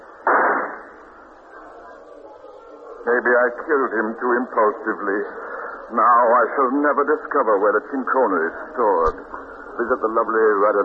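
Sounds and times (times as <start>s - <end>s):
gunshot sound effect in a radio drama: 0.2s - 1.0s
speech: 3.0s - 10.8s.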